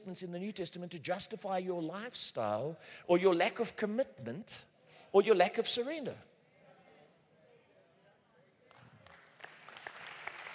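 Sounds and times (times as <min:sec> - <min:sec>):
speech: 0:00.0 - 0:06.3
audience clapping: 0:08.7 - 0:10.5.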